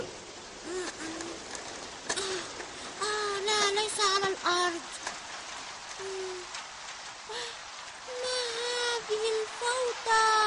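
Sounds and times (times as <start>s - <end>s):
steady rain: 0.0s - 10.4s
speech: 4.4s - 5.0s.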